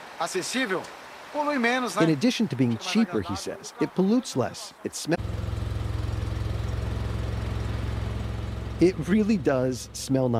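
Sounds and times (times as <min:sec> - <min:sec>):
speech: 0:00.2 - 0:05.2, 0:08.8 - 0:10.3
small boxy white Fiat engine running: 0:05.2 - 0:10.3.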